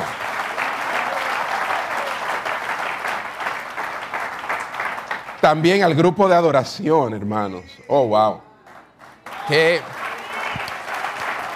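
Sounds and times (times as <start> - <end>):
audience applause: 0.0 - 5.8, 8.6 - 11.5
speech: 5.5 - 8.5, 9.5 - 9.9.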